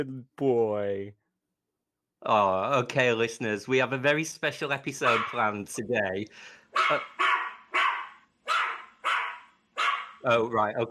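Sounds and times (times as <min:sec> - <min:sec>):
speech: 0:00.0 - 0:01.2, 0:02.2 - 0:07.3, 0:10.2 - 0:10.8
dog barking: 0:05.0 - 0:05.5, 0:06.8 - 0:10.2.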